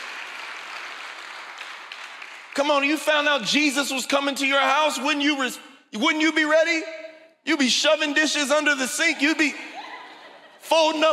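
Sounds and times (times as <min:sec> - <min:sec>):
audience clapping hands: 0:00.0 - 0:03.1
speech: 0:02.6 - 0:09.8, 0:10.7 - 0:11.1
laughter: 0:09.1 - 0:11.0.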